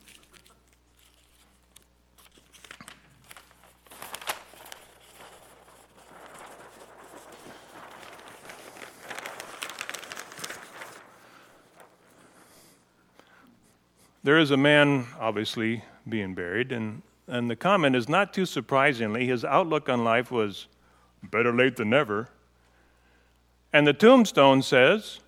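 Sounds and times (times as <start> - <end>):
paper rustling and crinkling as a cartoon is unwrapped: 0.0 - 12.3
speech: 14.3 - 22.3, 23.8 - 25.2.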